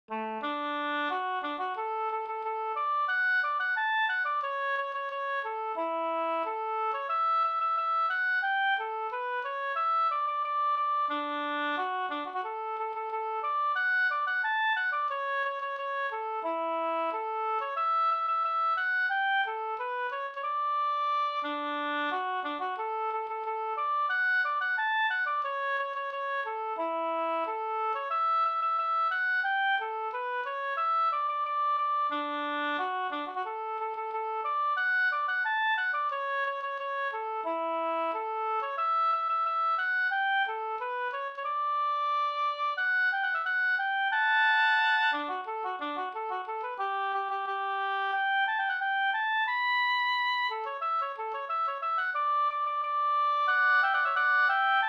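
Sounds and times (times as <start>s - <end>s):
folk walking tune: 0.1s - 54.8s.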